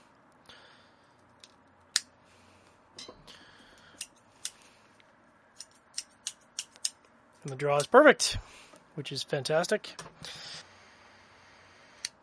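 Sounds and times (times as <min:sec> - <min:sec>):
V-cutter cutting a cigar: 0:05.6 - 0:08.0
speech: 0:07.4 - 0:10.4.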